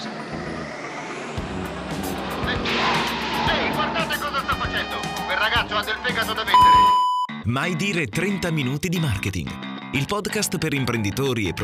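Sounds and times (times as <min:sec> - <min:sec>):
car engine roaring while driving through a gap between two cars: 0:00.0 - 0:06.5
speech: 0:07.5 - 0:11.6.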